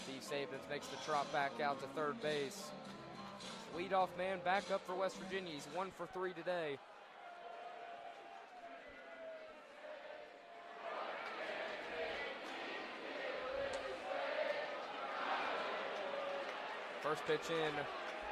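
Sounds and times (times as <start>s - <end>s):
speech: 0.1s - 3.0s, 3.7s - 6.9s, 17.1s - 18.0s
stadium crowd finishing singing a song: 9.5s - 18.2s.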